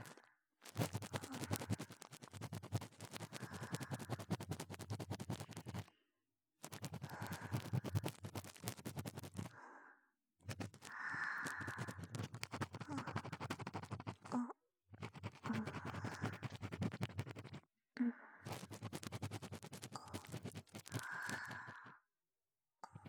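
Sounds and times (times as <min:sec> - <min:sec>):
ASMR ear cleaning on the right ear: 0:00.7 - 0:05.9, 0:06.6 - 0:09.5, 0:10.5 - 0:14.3, 0:15.0 - 0:17.6, 0:18.5 - 0:21.7.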